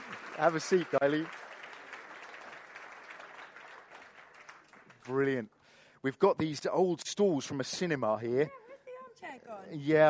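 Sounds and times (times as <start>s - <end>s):
audience applause: 0.0s - 5.5s
speech: 0.4s - 1.4s, 5.1s - 8.6s, 9.3s - 10.0s.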